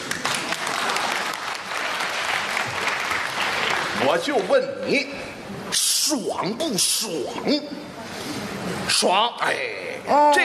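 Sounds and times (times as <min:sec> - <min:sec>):
audience applause: 0:00.0 - 0:04.6
speech: 0:04.0 - 0:08.3, 0:08.9 - 0:10.4.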